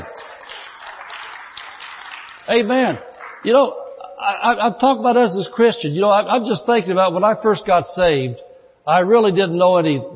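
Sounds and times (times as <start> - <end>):
audience clapping: 0.0 - 3.7
speech: 2.5 - 10.1.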